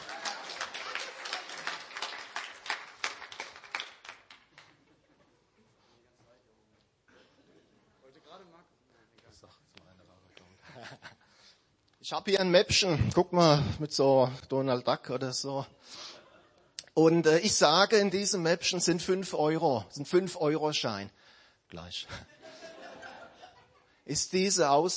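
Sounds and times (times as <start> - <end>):
audience applause: 0.0 - 4.8
laughter: 4.6 - 5.9, 10.5 - 11.5, 22.1 - 24.0
speech: 12.1 - 16.0, 17.0 - 22.4, 24.1 - 24.9.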